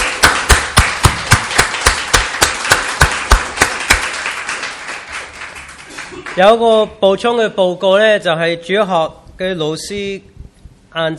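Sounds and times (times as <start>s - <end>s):
church congregation clapping rhythmically together: 0.0s - 6.9s
speech: 6.4s - 10.3s, 10.9s - 11.1s.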